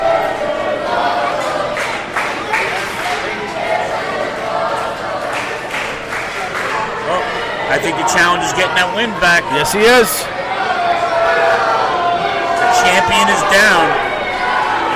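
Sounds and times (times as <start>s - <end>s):
wrestling crowd cheering during a close match: 0.0s - 14.9s
speech: 7.9s - 10.4s, 12.8s - 14.1s.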